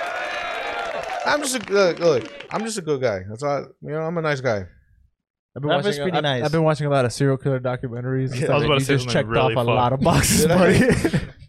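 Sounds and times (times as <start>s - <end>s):
cheering sound effect from a button: 0.0s - 2.7s
speech: 1.2s - 4.8s, 5.6s - 11.4s
laughter: 10.0s - 11.4s.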